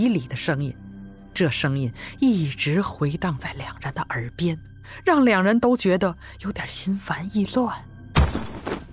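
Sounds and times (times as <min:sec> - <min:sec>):
speech: 0:00.0 - 0:00.8, 0:01.4 - 0:07.9
heavy object thudding to the ground: 0:08.2 - 0:08.9.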